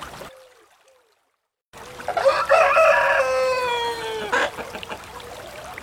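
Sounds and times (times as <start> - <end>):
rooster crowing in the countryside: 2.1 - 4.9.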